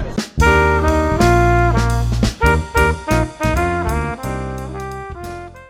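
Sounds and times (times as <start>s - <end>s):
bongo jazz: 0.2s - 5.6s.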